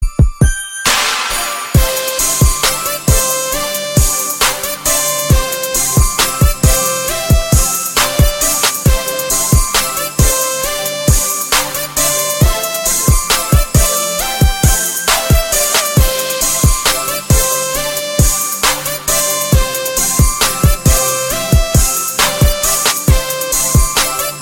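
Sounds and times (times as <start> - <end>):
Christmas hip hop music: 0.0 - 24.4.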